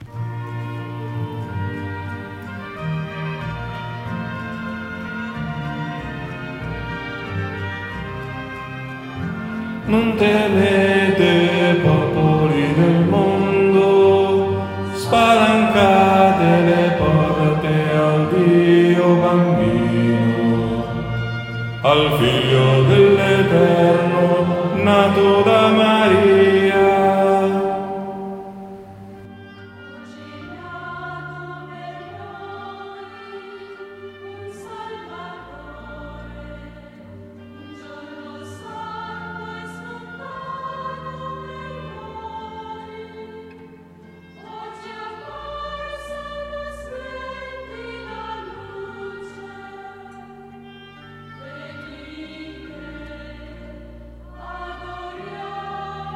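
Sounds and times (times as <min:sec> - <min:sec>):
bass voices singing: 0:00.1 - 0:29.2, 0:34.5 - 0:56.1.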